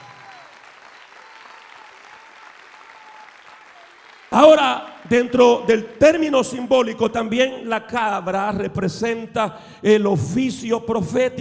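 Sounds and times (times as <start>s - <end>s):
audience applauding: 0.0s - 6.8s
speech: 4.4s - 11.3s.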